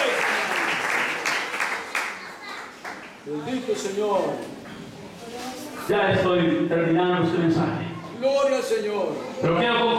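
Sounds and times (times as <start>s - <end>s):
audience applause: 0.0s - 3.2s
speech: 3.3s - 4.6s, 5.9s - 9.9s.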